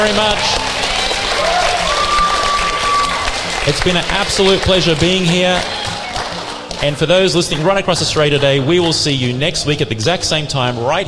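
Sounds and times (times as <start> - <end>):
speech: 0.0 - 0.7, 3.7 - 5.8, 6.8 - 11.0
studio audience applause: 0.0 - 8.7.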